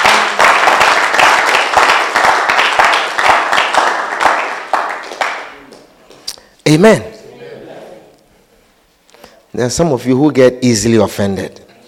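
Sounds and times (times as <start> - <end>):
church congregation clapping for Jesus: 0.0 - 6.3
speech: 6.7 - 7.1, 9.6 - 11.6.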